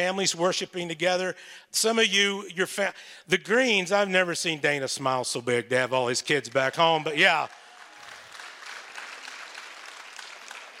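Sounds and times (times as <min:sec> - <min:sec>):
speech: 0:00.0 - 0:07.6
audience clapping: 0:06.5 - 0:10.7.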